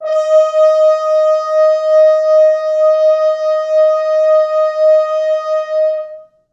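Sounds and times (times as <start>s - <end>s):
French horns sustaining D#4: 0.0s - 6.2s.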